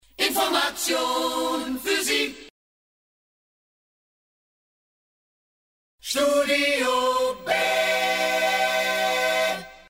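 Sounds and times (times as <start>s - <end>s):
a cappella jingle: 0.2s - 2.5s, 6.1s - 9.8s.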